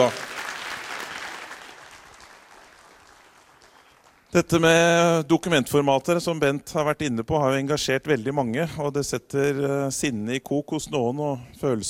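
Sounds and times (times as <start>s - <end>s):
speech: 0.0s - 0.2s, 4.3s - 11.8s
audience applause: 0.0s - 4.3s.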